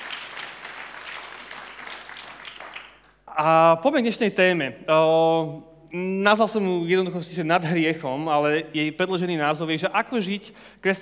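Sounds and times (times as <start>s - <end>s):
congregation applauding its pastors during a church service: 0.0s - 3.2s
speech: 3.4s - 11.0s.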